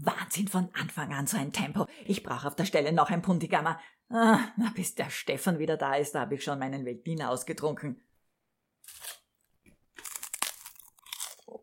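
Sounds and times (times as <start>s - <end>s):
speech: 0.4s - 8.1s
rice cakes being bitten and chewed: 8.8s - 11.6s.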